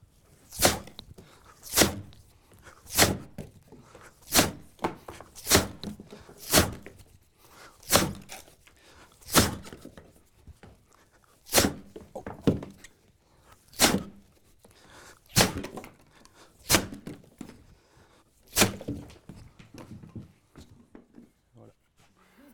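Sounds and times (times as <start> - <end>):
chopping wood: 0.5 - 2.2, 2.9 - 7.0, 7.8 - 8.5, 9.3 - 10.0, 11.5 - 12.8, 13.8 - 14.2, 15.3 - 16.0, 16.6 - 17.6, 18.5 - 19.2.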